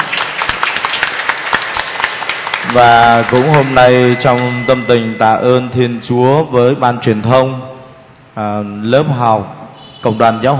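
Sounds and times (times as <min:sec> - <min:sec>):
church congregation at Vinh Hoa parish clapping on Pentecost: 0:00.0 - 0:05.4
speech: 0:02.7 - 0:07.7, 0:08.4 - 0:10.5.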